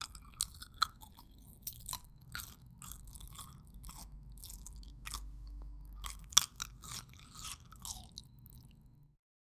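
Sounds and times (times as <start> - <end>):
biting fresh bread softly: 0.0 - 8.8.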